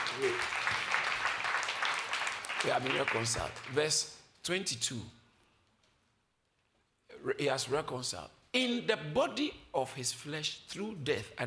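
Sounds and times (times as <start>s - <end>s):
audience clapping: 0.0s - 4.2s
speech: 0.2s - 0.6s, 2.6s - 5.2s, 7.2s - 11.4s.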